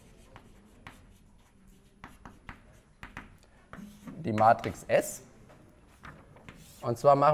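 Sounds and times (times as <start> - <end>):
handwriting a matrix during a maths lecture: 0.0 - 4.8, 5.8 - 6.9
speech: 4.2 - 5.3, 6.8 - 7.3.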